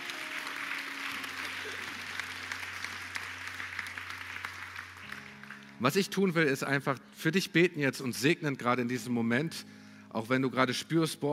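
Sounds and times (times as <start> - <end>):
applause: 0.0 - 6.3
speech: 5.8 - 11.3.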